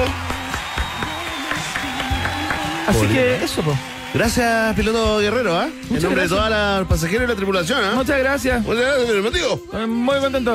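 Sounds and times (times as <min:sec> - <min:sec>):
applause: 0:00.0 - 0:05.9
speech: 0:02.9 - 0:10.5.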